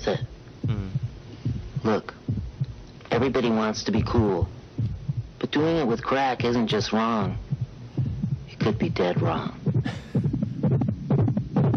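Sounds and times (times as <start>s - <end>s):
pounding heartbeat sound effect: 0.0s - 11.7s
speech: 0.1s - 0.3s, 3.2s - 4.6s, 5.5s - 7.5s, 8.6s - 10.0s.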